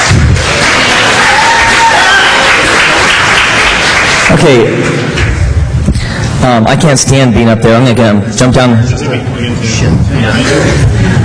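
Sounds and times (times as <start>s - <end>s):
crowd applauding: 0.0s - 5.5s
whoops and cheers: 0.7s - 2.9s
speech: 4.4s - 5.0s, 6.4s - 11.2s.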